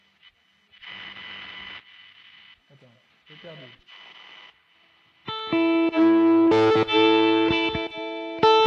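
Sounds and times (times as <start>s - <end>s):
scratchy noisy bursts: 0.2s - 5.2s
overdriven electric guitar chords with gain, delay and reverb: 5.2s - 8.6s.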